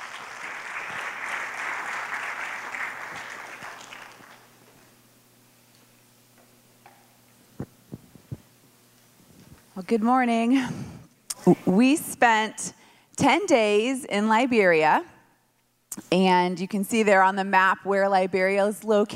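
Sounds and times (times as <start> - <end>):
round of applause: 0.0 - 4.6
speech: 9.8 - 10.8, 11.4 - 15.1, 16.1 - 19.1.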